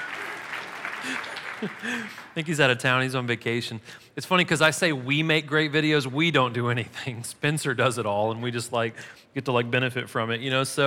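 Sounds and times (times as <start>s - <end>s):
audience clapping: 0.0s - 2.6s
speech: 1.0s - 10.8s.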